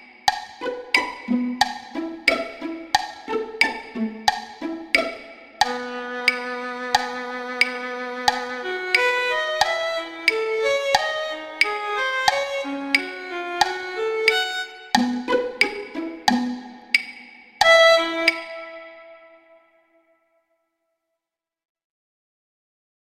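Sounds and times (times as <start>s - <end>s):
violin playing an etude accompaniment: 0.6s - 16.3s, 17.6s - 19.6s.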